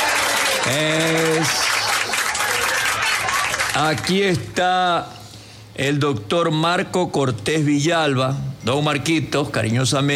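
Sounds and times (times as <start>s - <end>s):
audience applause: 0.0s - 4.2s
speech: 0.7s - 1.7s, 3.8s - 5.2s, 5.8s - 10.1s.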